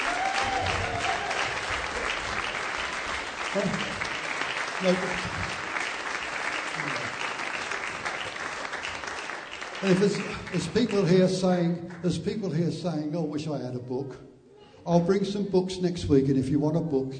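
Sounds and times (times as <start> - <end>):
audience applause: 0.0 - 12.1
speech: 3.6 - 3.9, 4.8 - 5.6, 9.8 - 17.1.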